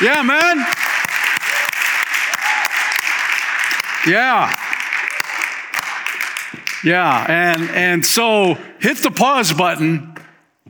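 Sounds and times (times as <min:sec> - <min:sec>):
speech: 0:00.0 - 0:00.8, 0:04.0 - 0:04.6, 0:06.8 - 0:10.6
crowd clapping: 0:00.0 - 0:08.1.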